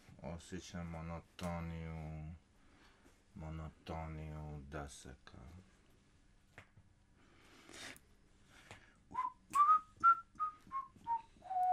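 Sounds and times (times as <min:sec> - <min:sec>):
speech: 0:00.4 - 0:02.4, 0:03.4 - 0:05.7
person whistling: 0:09.1 - 0:11.7.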